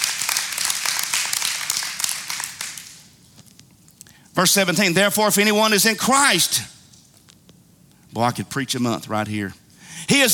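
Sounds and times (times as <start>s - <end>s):
audience clapping: 0.0s - 3.2s
speech: 4.4s - 6.8s, 8.2s - 10.3s.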